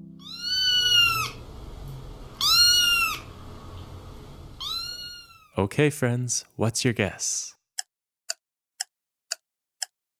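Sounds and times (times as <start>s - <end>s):
cat meowing: 0.2s - 1.4s, 2.4s - 3.3s, 4.6s - 5.5s
speech: 5.6s - 7.6s.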